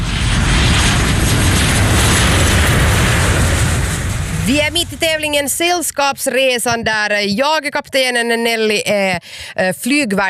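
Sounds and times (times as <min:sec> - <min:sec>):
airplane coming in to land engine roar: 0:00.0 - 0:06.2
speech: 0:04.5 - 0:10.2.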